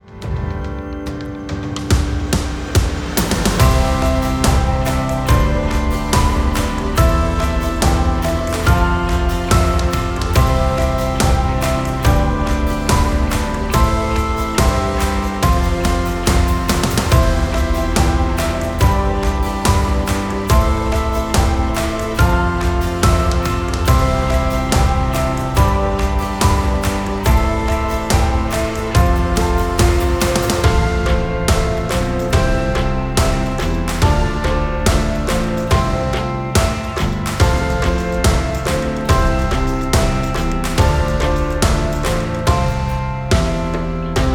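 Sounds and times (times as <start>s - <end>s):
children: 1.0s - 44.3s.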